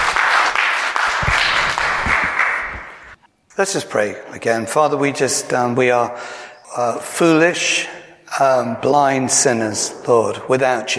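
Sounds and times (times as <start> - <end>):
audience applause at a church sermon welcoming a preacher: 0.0 - 3.2
speech: 3.6 - 10.9.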